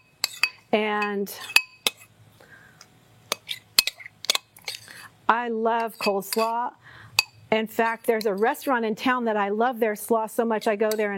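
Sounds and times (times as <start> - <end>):
utensil clinking against a bowl while mixing coleslaw: 0.0 - 2.1, 3.3 - 5.0, 5.8 - 6.6, 7.2 - 8.5, 10.8 - 11.1
speech: 0.7 - 1.6, 5.3 - 6.9, 7.5 - 11.1.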